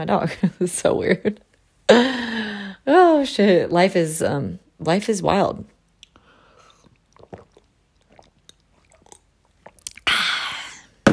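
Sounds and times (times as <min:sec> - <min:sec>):
speech: 0:00.0 - 0:05.7
person drinking water: 0:06.0 - 0:11.0.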